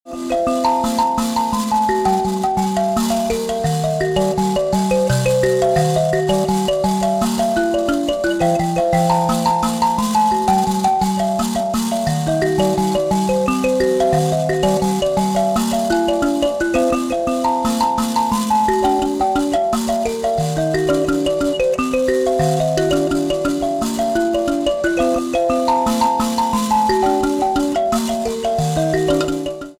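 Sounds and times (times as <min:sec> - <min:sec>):
mbira: 0:00.1 - 0:29.7.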